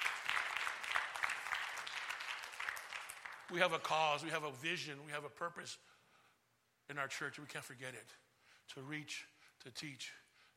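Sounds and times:
audience clapping: 0.0 - 4.1
speech: 3.5 - 5.9, 6.9 - 10.2.

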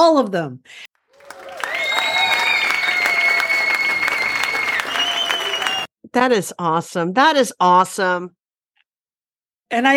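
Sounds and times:
speech: 0.1 - 0.9, 6.1 - 8.4, 9.7 - 9.9
applause sound effect: 1.0 - 5.9.

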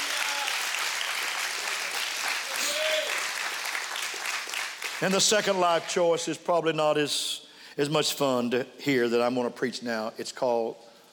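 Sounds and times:
audience clapping hands: 0.0 - 6.3
speech: 5.0 - 10.9.

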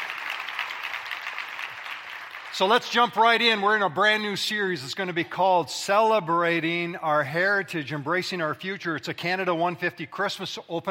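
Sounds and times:
audience clapping: 0.0 - 3.6
speech: 2.6 - 10.8.

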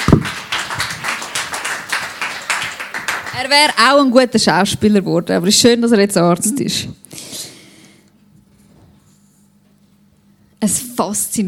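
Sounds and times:
audience applause: 0.0 - 4.1
speech: 3.4 - 7.2, 10.6 - 11.4.

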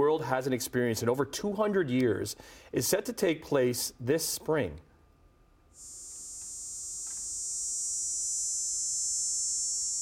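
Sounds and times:
speech: 0.2 - 4.9
cicadas buzzing: 5.8 - 9.9.

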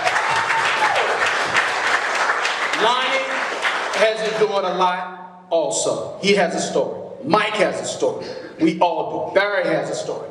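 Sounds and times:
audience round of applause: 0.0 - 4.5
speech: 2.8 - 3.1, 4.0 - 10.2.

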